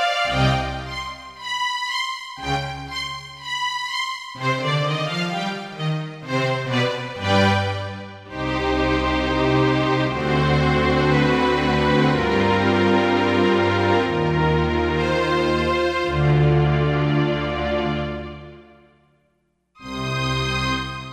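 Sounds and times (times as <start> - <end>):
synthesizer strings: 0.0 - 18.8.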